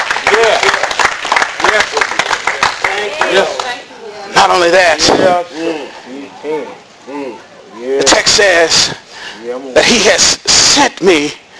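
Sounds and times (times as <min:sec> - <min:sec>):
audience clapping hands: 0:00.0 - 0:03.8
speech: 0:04.4 - 0:07.2, 0:07.9 - 0:11.4.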